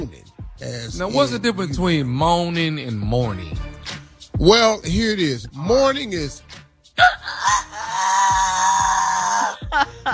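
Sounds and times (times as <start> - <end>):
speech: 0.0 - 3.7, 4.4 - 7.2
person imitating a rooster crow: 7.0 - 9.6
laughter: 9.3 - 10.1.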